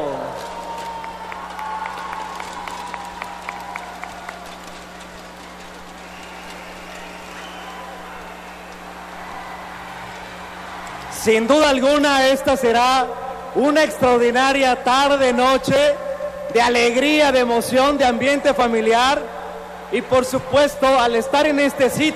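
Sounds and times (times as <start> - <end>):
crowd murmuring: 0.0 - 13.9
audience applause: 0.0 - 15.2
low electrical hum: 0.0 - 22.1
speech: 11.2 - 19.3, 19.9 - 22.1.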